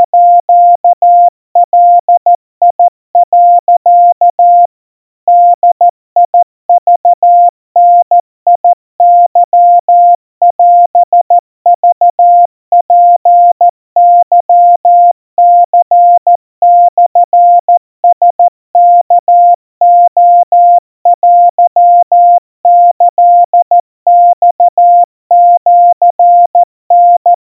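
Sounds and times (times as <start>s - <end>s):
crispy 700 Hz Morse code tones at 50 cpm: 0.0s - 27.4s.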